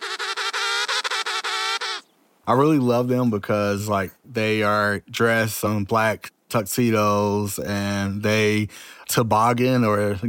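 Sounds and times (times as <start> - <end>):
penguin braying call: 0.0 - 2.1
speech: 2.4 - 10.2.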